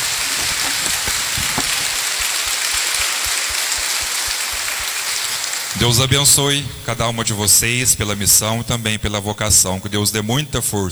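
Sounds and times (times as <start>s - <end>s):
crowd applauding for mothers: 0.0s - 6.2s
speech: 5.8s - 10.9s.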